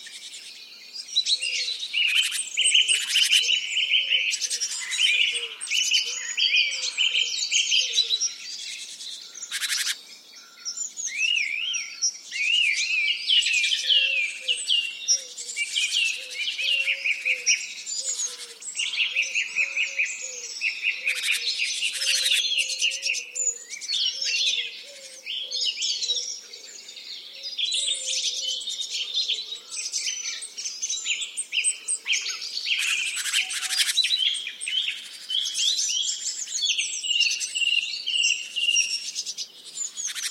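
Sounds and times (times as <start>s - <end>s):
songbird chorus twittering and whistling: 0.0s - 40.2s.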